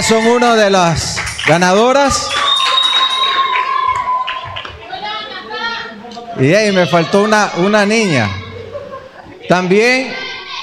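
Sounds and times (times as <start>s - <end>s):
audience applause: 0.0s - 5.2s
speech: 0.1s - 2.4s, 6.4s - 8.4s, 9.5s - 10.2s
laughter: 8.2s - 9.7s.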